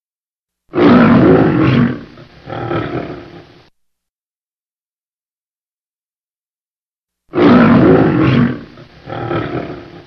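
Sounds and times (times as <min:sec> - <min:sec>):
lion roaring: 0:00.7 - 0:03.6, 0:07.3 - 0:10.0.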